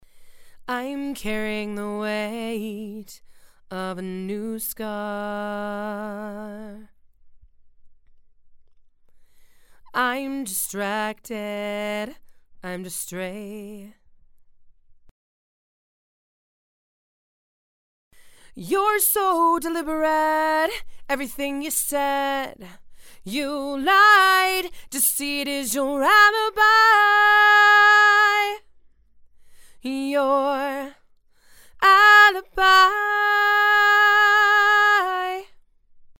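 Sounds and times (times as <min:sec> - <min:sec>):
female vocals: 0:00.6 - 0:07.0, 0:09.9 - 0:14.0, 0:18.5 - 0:28.7, 0:29.8 - 0:31.0, 0:31.7 - 0:35.6.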